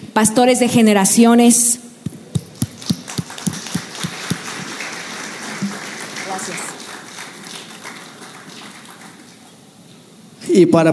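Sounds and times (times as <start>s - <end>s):
speech: 0.2s - 1.8s, 10.6s - 10.9s
audience applause: 2.4s - 9.6s.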